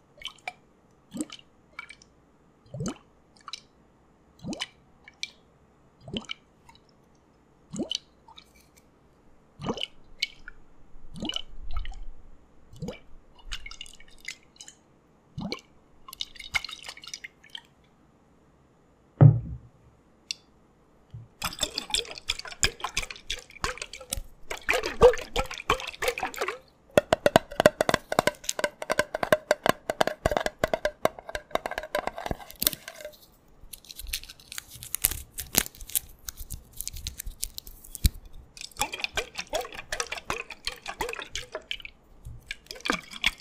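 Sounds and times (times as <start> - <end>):
water drips and plops: 0.2 - 2.1, 2.7 - 3.7, 4.4 - 5.4, 6.0 - 6.9, 7.7 - 8.5, 9.6 - 12.0, 12.7 - 14.8, 15.4 - 17.7, 21.3 - 30.8, 35.6 - 43.3
thump: 19.2 - 19.7
thick and thin creams squishing and gurgling: 21.4 - 43.3.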